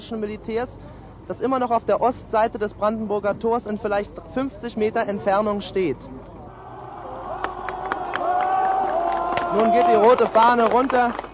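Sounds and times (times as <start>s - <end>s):
speech: 0.1s - 6.3s, 9.5s - 11.2s
demonstrators clapping at the Brandenburg Gate in Berlin: 7.3s - 11.3s.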